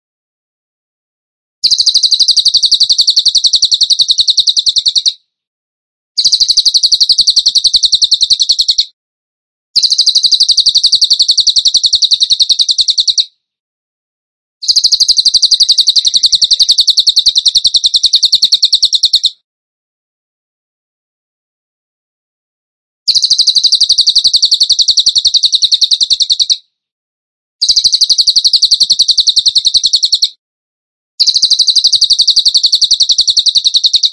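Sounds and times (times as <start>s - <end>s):
bird ringing trills: 1.6s - 5.2s, 6.2s - 8.9s, 9.8s - 13.3s, 14.6s - 19.4s, 23.1s - 26.6s, 27.6s - 30.4s, 31.2s - 34.1s.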